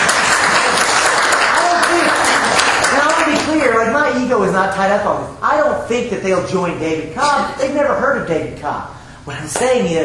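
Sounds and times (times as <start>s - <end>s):
audience applause: 0.0s - 3.5s
speech: 4.2s - 10.0s.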